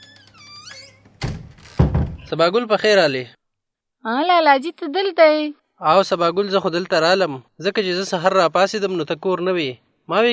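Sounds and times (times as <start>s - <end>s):
house door opening thunk: 1.1s - 2.3s
speech: 2.3s - 3.4s, 4.0s - 10.3s.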